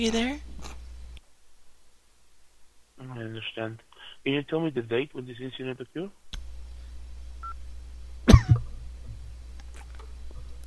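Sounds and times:
speech: 0.0 - 0.5, 3.0 - 6.2
man coughing: 8.3 - 8.7.

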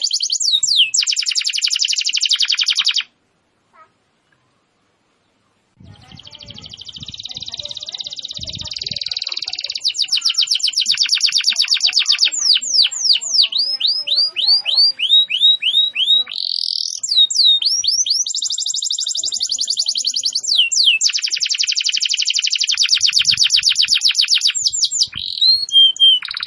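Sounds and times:
canary singing vigorously: 0.0 - 3.2, 5.8 - 26.4.

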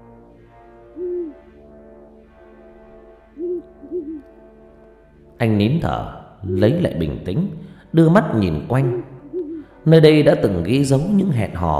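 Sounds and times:
owl hooting: 0.9 - 1.4, 3.4 - 4.3, 8.7 - 9.9
speech: 5.4 - 9.1, 9.8 - 11.7.

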